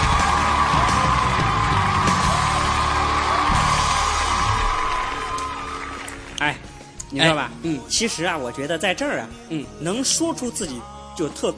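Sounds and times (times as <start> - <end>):
scattered yells and whoops: 0.0 - 6.2
audience applause: 0.0 - 6.4
speech: 6.5 - 11.5.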